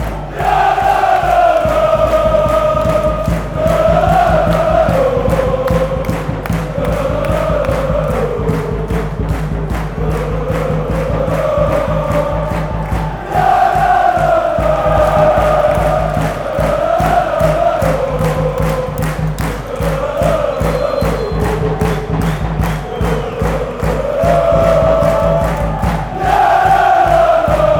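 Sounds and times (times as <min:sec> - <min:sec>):
fans chanting: 0:00.0 - 0:27.7.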